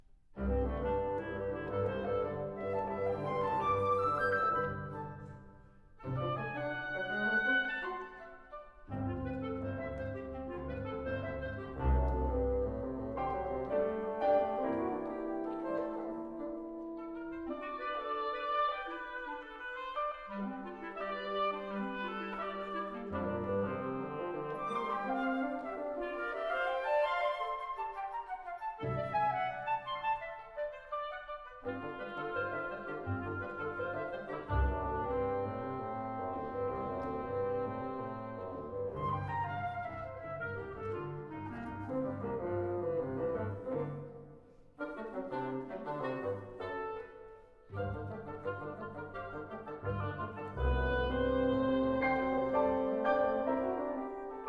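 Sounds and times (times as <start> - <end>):
orchestra playing allegro ma non troppo giocoso: 0.4 - 54.4.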